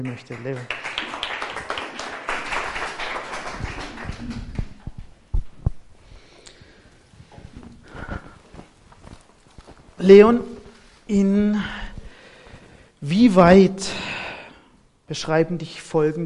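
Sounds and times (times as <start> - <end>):
speech: 0.0 - 0.9, 10.0 - 10.5, 11.1 - 11.8, 13.0 - 14.0, 15.1 - 16.2
audience applause: 0.0 - 4.8.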